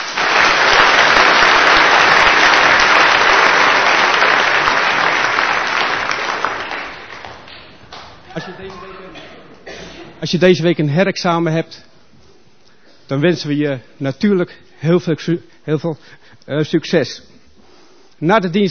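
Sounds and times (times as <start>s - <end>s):
church congregation applauding its graduates: 0.0s - 9.0s
speech: 10.2s - 11.9s, 13.1s - 17.3s, 18.2s - 18.6s.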